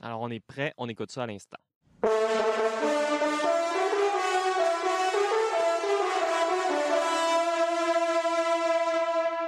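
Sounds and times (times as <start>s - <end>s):
speech: 0.2s - 2.6s
hunting horn playing a brassy melody: 2.0s - 9.4s.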